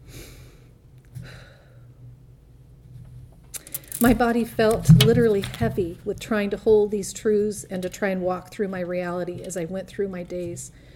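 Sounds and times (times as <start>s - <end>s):
deep belly breath: 0.0s - 2.0s
speech: 4.0s - 10.9s.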